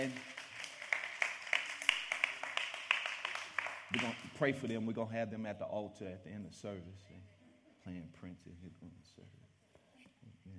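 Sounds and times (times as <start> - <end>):
speech: 0.0 - 0.3, 3.9 - 9.5
audience clapping: 0.0 - 4.8.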